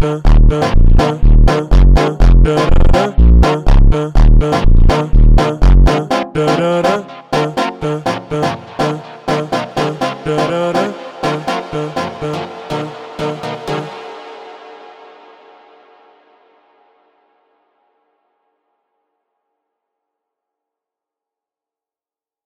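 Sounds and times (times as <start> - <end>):
slowed funk music: 0.3 - 13.9.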